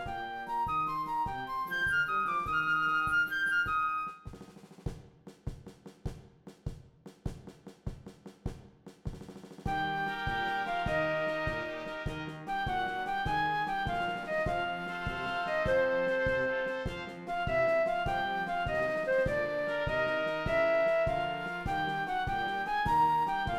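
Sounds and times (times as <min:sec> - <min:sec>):
flute: 0:00.0 - 0:04.6, 0:09.7 - 0:23.5.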